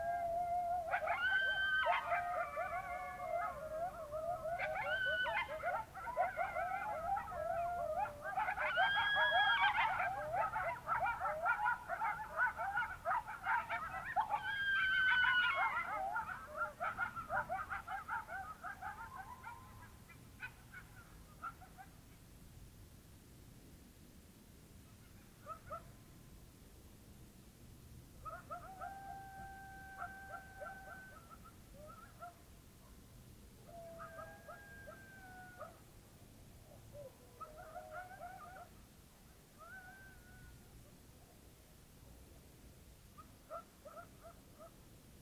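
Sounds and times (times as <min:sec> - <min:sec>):
coyote chorus yipping and howling: 0:00.0 - 0:22.2, 0:24.9 - 0:25.9, 0:28.2 - 0:32.5, 0:33.6 - 0:35.9, 0:36.6 - 0:38.8, 0:39.4 - 0:41.0, 0:43.1 - 0:44.8.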